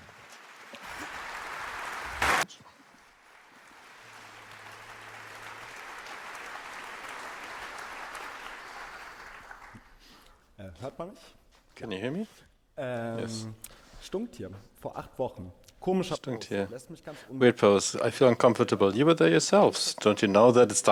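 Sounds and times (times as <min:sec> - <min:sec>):
audience applause: 0:00.0 - 0:10.3
speech: 0:10.6 - 0:20.9.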